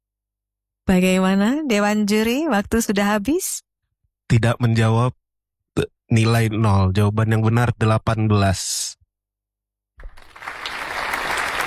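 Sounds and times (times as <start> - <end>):
speech: 0.9 - 3.7, 4.3 - 5.2, 5.8 - 9.0
audience applause: 10.0 - 11.6.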